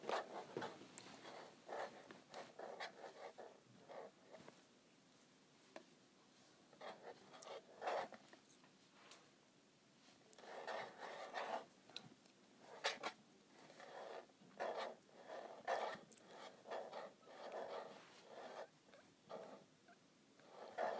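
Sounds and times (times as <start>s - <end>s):
scratching on a calculator: 0.0s - 4.4s, 6.7s - 8.3s, 10.3s - 11.7s, 12.6s - 19.7s, 20.4s - 20.9s.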